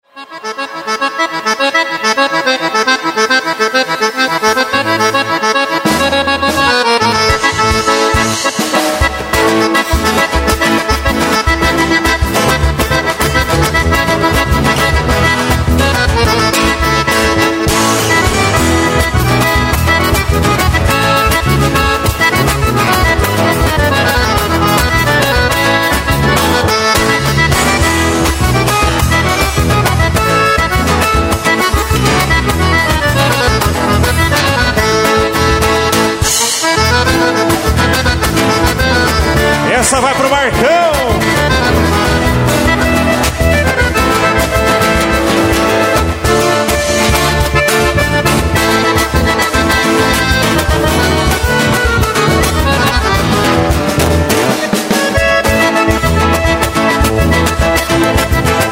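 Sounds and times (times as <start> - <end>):
instrumental music: 0.0 - 58.7.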